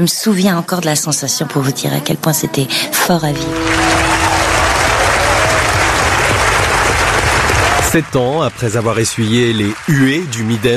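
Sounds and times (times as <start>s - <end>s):
speech: 0.0s - 4.3s, 7.9s - 10.7s
audience ovation applause in festival hall: 3.4s - 10.7s.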